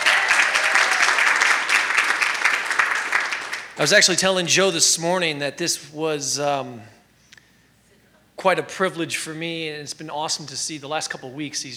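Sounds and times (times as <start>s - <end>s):
audience applause: 0.0s - 3.8s
speech: 3.8s - 7.0s, 8.4s - 11.7s.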